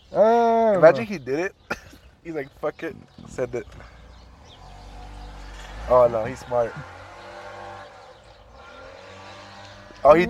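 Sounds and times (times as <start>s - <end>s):
speech: 0.1s - 3.9s, 5.9s - 7.0s, 10.0s - 10.2s
car accelerating and shifting into second gear: 3.6s - 10.2s.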